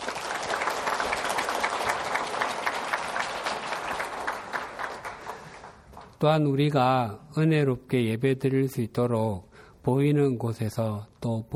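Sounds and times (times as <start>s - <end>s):
audience applauding: 0.0s - 6.1s
speech: 6.2s - 11.5s.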